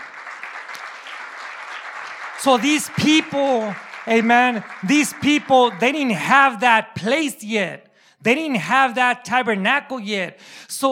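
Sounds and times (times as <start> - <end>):
audience round of applause: 0.0 - 6.4
speech: 2.4 - 10.9.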